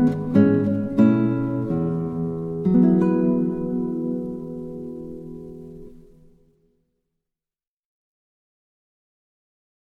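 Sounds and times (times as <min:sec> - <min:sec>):
guitar: 0:00.0 - 0:06.8.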